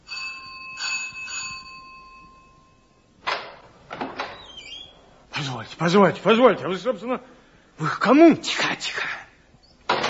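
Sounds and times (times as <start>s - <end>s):
doorbell ringing: 0.0s - 3.1s
speech: 5.4s - 9.2s.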